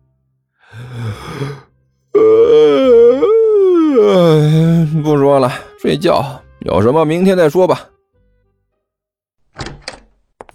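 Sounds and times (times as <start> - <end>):
person acting out a big yawn: 0.6 - 5.0
speech: 5.9 - 7.9.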